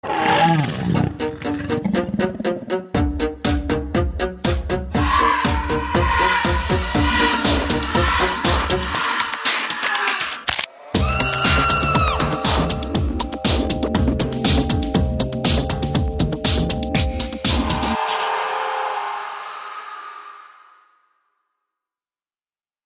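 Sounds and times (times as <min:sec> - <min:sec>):
Halloween groove music: 0:00.1 - 0:19.9.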